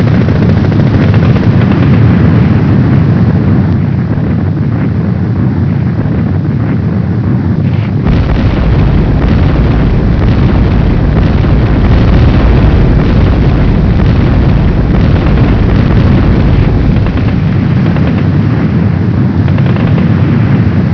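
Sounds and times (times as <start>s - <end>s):
bombing explosions: 0.0s - 20.9s.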